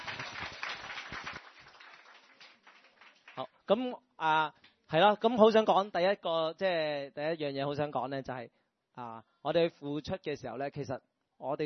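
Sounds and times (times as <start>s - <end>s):
crowd applauding: 0.0s - 3.4s
speech: 3.4s - 11.6s.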